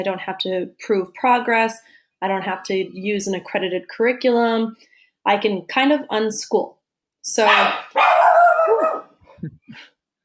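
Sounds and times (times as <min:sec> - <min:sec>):
speech: 0:00.0 - 0:08.1
dog barking: 0:07.5 - 0:09.2.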